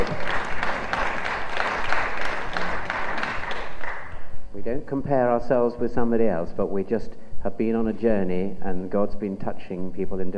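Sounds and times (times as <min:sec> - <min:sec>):
audience applause: 0:00.0 - 0:04.2
speech: 0:04.7 - 0:10.3.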